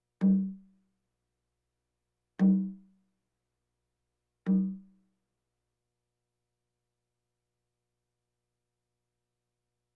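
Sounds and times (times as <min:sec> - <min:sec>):
bongos: 0:04.5 - 0:04.9.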